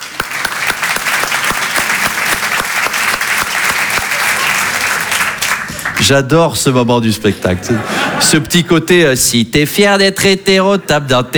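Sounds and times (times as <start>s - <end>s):
audience applause: 0.0s - 8.4s
laughter: 0.0s - 11.3s
speech: 6.1s - 11.3s.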